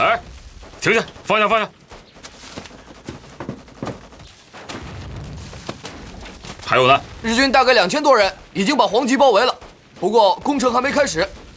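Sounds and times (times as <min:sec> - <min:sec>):
gunfire and artillery: 0:00.0 - 0:11.5
speech: 0:00.2 - 0:01.8, 0:06.7 - 0:11.4.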